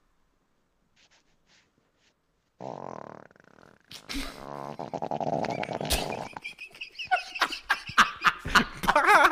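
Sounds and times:
fart sound effect: 2.6 - 6.4
laughter: 5.6 - 9.3.

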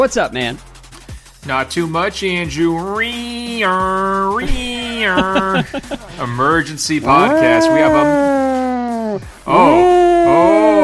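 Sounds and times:
speech: 0.0 - 0.7, 1.4 - 8.3
laughter: 4.4 - 8.1
voice imitating a tornado siren: 7.0 - 10.8.

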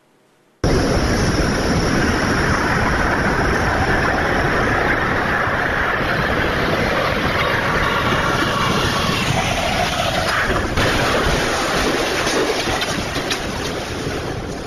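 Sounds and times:
car crash: 0.6 - 14.4.

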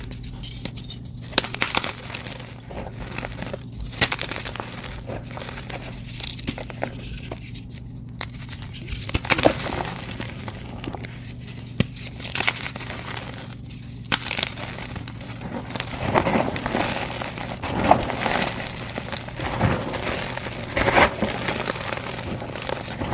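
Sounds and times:
crispy dyed gym chalk dipped in paste crumbling: 0.0 - 23.1
low hum: 0.0 - 23.1.

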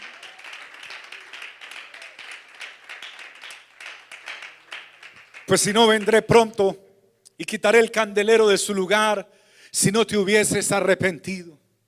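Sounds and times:
crowd clapping: 0.0 - 6.6
speech: 5.5 - 6.8, 7.4 - 11.6.

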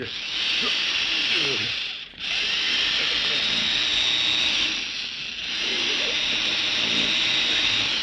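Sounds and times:
faint voices murmuring: 0.0 - 3.8, 5.5 - 8.0
power drill boring into a vault: 0.0 - 8.0.

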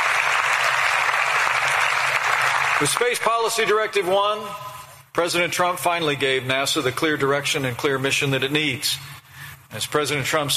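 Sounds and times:
audience applause: 0.0 - 3.6
speech: 2.8 - 10.5.

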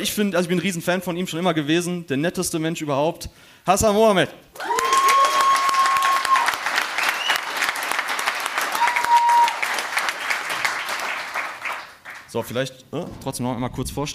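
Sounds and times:
speech: 0.0 - 4.8, 12.3 - 14.1
live audience applause: 4.6 - 12.3.

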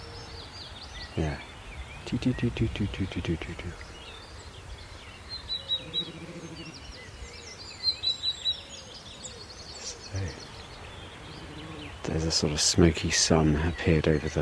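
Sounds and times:
willow warbler singing in woodland: 0.0 - 14.3
speech: 1.2 - 4.0, 12.1 - 14.3.

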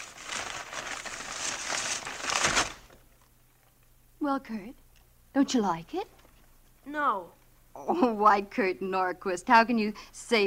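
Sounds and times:
wrapping paper crinkling as a birthday present is unwrapped: 0.0 - 3.9
speech: 4.3 - 6.2, 6.8 - 10.4.

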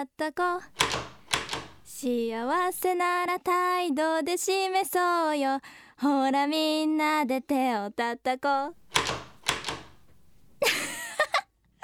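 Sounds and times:
speech: 0.0 - 1.1, 2.0 - 8.8
thumps on a door: 0.8 - 1.9, 8.8 - 10.6
laughter: 10.6 - 11.8.

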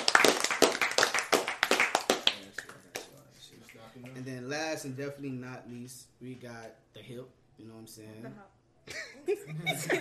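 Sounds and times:
hand clapping: 0.0 - 3.8
speech: 4.8 - 9.9.

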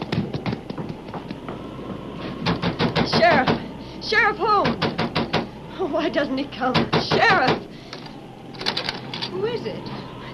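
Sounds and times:
footsteps running up steps: 0.0 - 3.5
speech: 4.1 - 4.8, 5.8 - 7.8, 9.4 - 10.0.

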